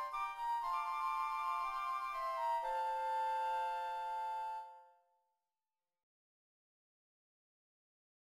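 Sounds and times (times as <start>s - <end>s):
flute playing a hymn: 0.0s - 5.0s.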